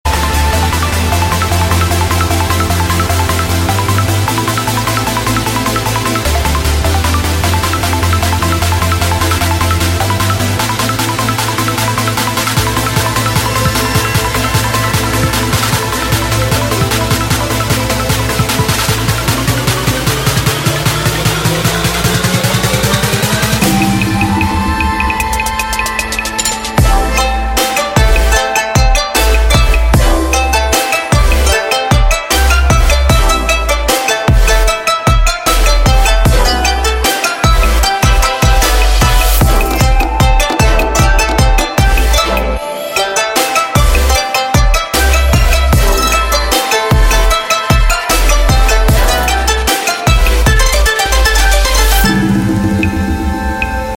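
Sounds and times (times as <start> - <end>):
electronic dance music: 0.0 - 53.9.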